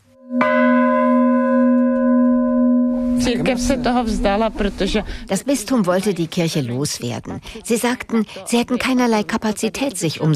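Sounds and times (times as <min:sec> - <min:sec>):
church bell struck by hand: 0:00.2 - 0:04.3
speech: 0:03.2 - 0:10.3.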